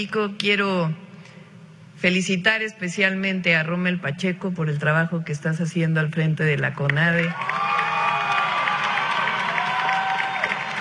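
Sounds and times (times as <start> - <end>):
speech: 0.0 - 1.0, 2.0 - 7.6
audience applause and cheering: 7.3 - 10.7.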